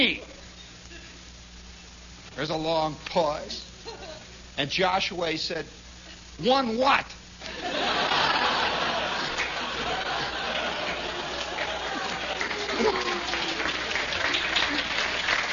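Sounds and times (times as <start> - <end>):
speech: 0.0 - 0.3, 2.4 - 3.7, 4.6 - 5.8, 6.4 - 7.8
scattered laughter: 7.5 - 13.5
crowd clapping: 8.0 - 15.5.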